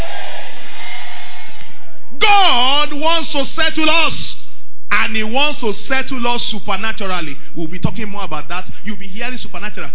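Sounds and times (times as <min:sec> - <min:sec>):
large audience shouting amen: 0:00.0 - 0:02.0
speech: 0:02.2 - 0:09.9.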